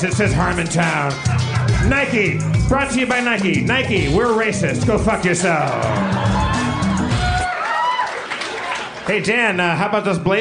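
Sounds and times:
speech: 0:00.0 - 0:06.4, 0:09.1 - 0:10.4
crowd cheering: 0:05.0 - 0:09.4.

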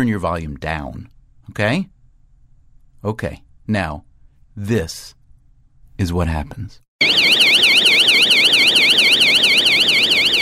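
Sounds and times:
speech: 0:00.0 - 0:01.9, 0:03.0 - 0:05.2, 0:06.0 - 0:08.4
emergency door alarm at a subway exit wailing: 0:07.0 - 0:10.4.

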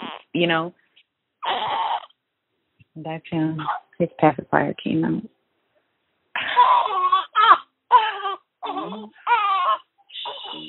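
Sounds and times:
six-day-old baby boy waking and crying: 0:00.0 - 0:00.6, 0:01.4 - 0:02.2, 0:03.6 - 0:04.0, 0:06.4 - 0:10.6
speech: 0:00.4 - 0:00.8, 0:03.0 - 0:05.3.

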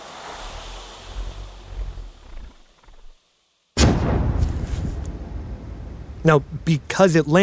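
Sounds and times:
grenade explosion: 0:03.8 - 0:06.0
speech: 0:06.2 - 0:07.4.

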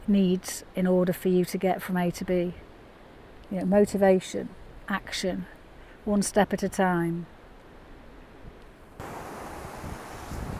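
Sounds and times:
speech: 0:00.1 - 0:02.7, 0:03.5 - 0:07.3
sea waves on a sandy beach: 0:09.0 - 0:10.5
wind buffeting the microphone: 0:09.0 - 0:10.5.

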